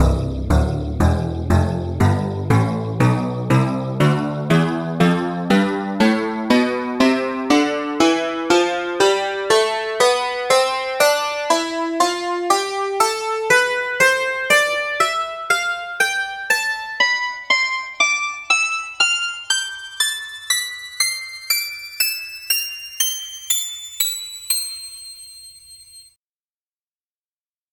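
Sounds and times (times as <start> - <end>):
dulcimer scale: 0.0 - 26.1.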